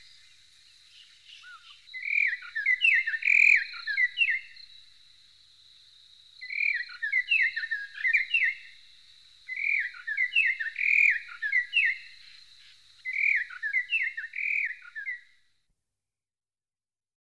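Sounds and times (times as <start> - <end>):
Cossypha singing: 0.0 - 4.8, 6.4 - 15.4.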